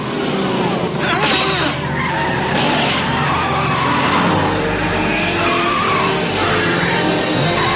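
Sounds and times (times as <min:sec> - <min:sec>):
car engine roaring: 0:00.0 - 0:07.7
car tires screeching skidding through a sharp curve in Back to the Future: 0:00.0 - 0:07.7.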